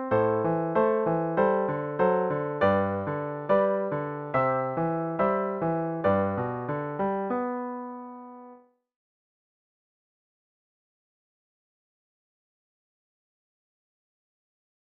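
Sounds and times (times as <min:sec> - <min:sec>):
piano: 0:00.0 - 0:08.8.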